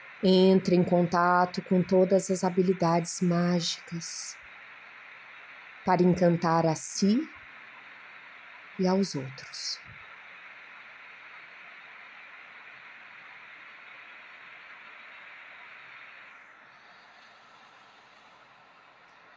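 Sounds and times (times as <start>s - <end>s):
rain: 0.0s - 0.8s, 4.3s - 5.9s, 7.2s - 19.3s
speech: 0.2s - 4.4s, 5.8s - 7.4s, 8.8s - 9.9s.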